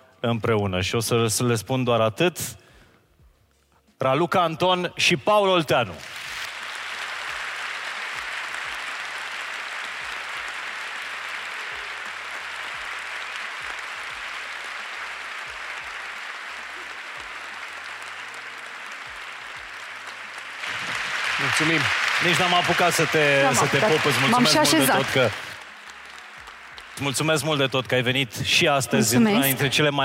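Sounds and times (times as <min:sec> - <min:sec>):
speech: 0:00.2 - 0:02.6, 0:04.0 - 0:06.2, 0:21.6 - 0:25.5, 0:27.0 - 0:30.0
crowd applause: 0:06.0 - 0:29.8.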